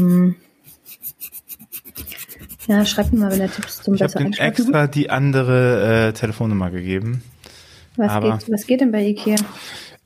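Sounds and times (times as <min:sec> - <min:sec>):
nail file rasping on a broken fingernail: 0:00.0 - 0:03.9
speech: 0:02.7 - 0:07.3, 0:08.0 - 0:10.0.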